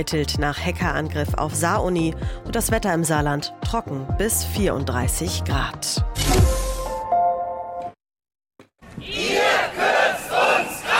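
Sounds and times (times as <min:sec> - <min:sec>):
speech: 0:00.0 - 0:06.5
psychotherapists, nursing staff and trade unionists chanting outside the Bundestag: 0:09.0 - 0:10.9.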